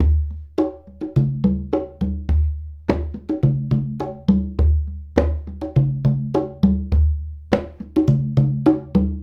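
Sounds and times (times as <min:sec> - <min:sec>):
congas: 0:00.0 - 0:09.2.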